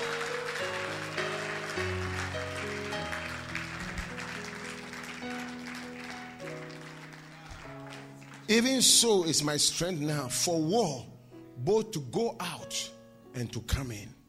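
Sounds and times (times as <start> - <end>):
audience clapping: 0.0 - 9.3
speech: 8.5 - 14.2.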